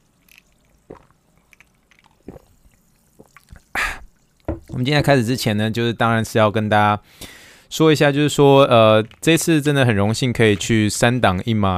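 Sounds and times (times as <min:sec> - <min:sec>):
bright fizzing: 0:00.0 - 0:05.1
sparkling water pouring: 0:00.0 - 0:05.1
speech: 0:04.7 - 0:11.7.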